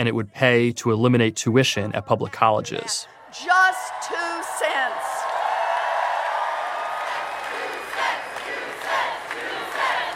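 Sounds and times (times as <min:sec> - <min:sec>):
speech: 0:00.0 - 0:05.2
rally crowd chanting: 0:02.6 - 0:10.1.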